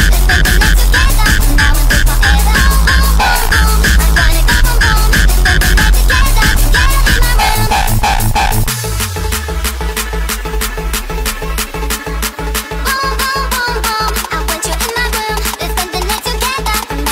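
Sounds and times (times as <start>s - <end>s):
sped up hardstyle music: 0.0s - 17.1s.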